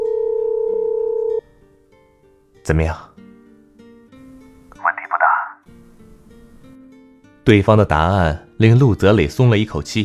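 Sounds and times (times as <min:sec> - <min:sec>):
telephone dial tone: 0:00.0 - 0:01.4
speech: 0:02.7 - 0:03.1, 0:07.4 - 0:10.0.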